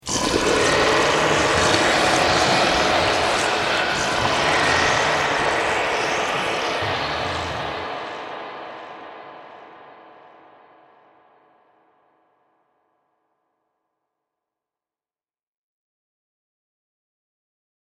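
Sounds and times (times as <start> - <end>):
zombies in a cave: 0.0 - 9.4.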